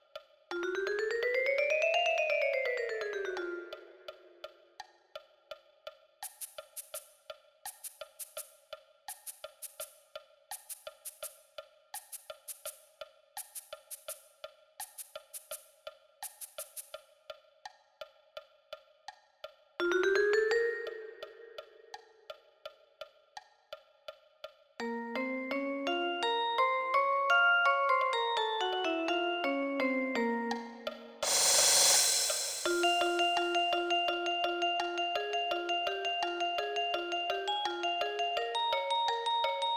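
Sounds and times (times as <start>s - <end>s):
vibraphone: 0.5s - 4.5s, 19.8s - 21.7s, 24.8s - 39.7s.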